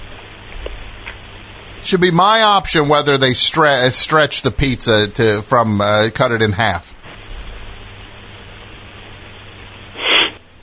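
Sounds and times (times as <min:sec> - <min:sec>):
speech: 0:01.8 - 0:06.9
person sniffling: 0:10.0 - 0:10.4.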